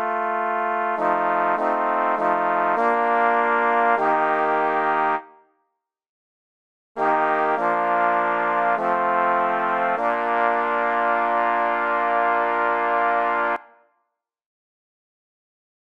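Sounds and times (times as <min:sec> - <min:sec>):
sampled trombone: 0:00.0 - 0:05.3, 0:07.0 - 0:13.6.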